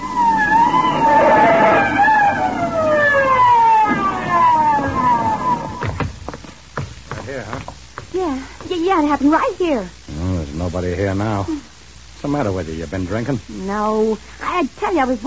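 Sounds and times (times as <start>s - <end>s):
police car siren wailing: 0.0s - 6.2s
engine rumbling: 0.0s - 8.9s
speech: 9.2s - 10.0s, 10.7s - 11.6s, 12.2s - 15.2s.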